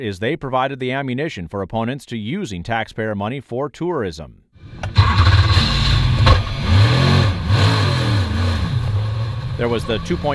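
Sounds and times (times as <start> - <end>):
speech: 0.0 - 5.0, 9.6 - 10.3
Corvette race car engine revving during a training run: 4.6 - 10.3.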